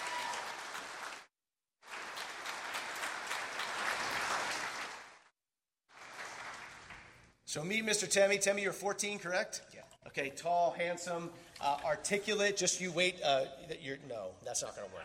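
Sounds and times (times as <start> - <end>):
audience applause: 0.0 - 5.3, 5.9 - 7.2
speech: 7.6 - 15.0.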